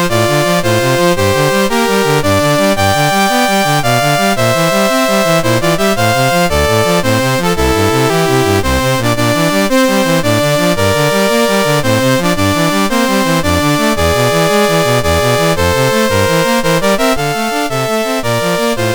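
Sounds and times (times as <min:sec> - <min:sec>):
chiptune music on MOS6581R4 sound chip: 0:00.0 - 0:18.9.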